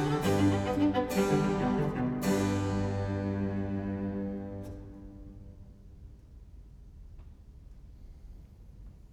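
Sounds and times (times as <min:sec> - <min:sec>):
sonata in G major: 0:00.0 - 0:06.0.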